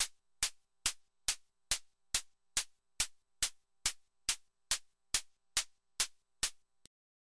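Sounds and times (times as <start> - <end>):
hi-hat: 0.0 - 6.8.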